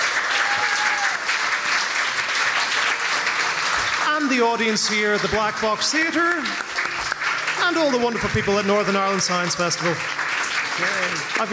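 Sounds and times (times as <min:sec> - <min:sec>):
audience applause at a science festival event in a theatre: 0:00.0 - 0:11.5
speech: 0:04.3 - 0:06.7, 0:07.6 - 0:10.2, 0:10.8 - 0:11.5.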